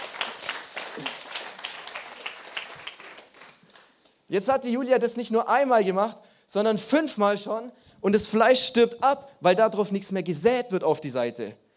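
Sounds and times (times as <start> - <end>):
audience applause: 0.0 - 3.9
speech: 4.3 - 11.6.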